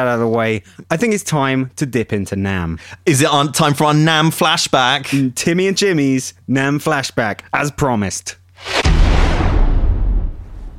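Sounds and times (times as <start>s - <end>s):
speech: 0.0s - 9.0s
heavy booming impact sound effect: 8.7s - 10.7s.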